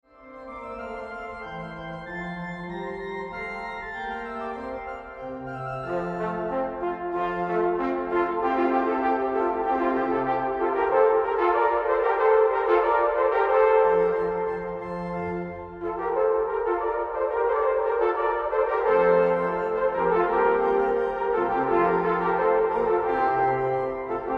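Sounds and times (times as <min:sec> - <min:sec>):
organ playing allegro: 0:00.1 - 0:09.8, 0:10.9 - 0:24.3
trumpet playing allegro: 0:00.2 - 0:24.3.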